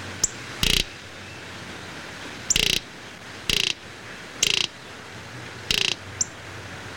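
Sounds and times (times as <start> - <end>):
greater roadrunner calling: 0.2 - 1.3, 2.5 - 4.9, 5.6 - 6.4.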